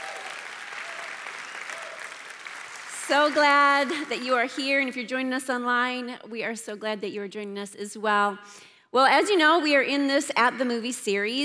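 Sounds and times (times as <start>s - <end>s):
church audience applause: 0.0s - 4.5s
speech: 3.1s - 11.4s.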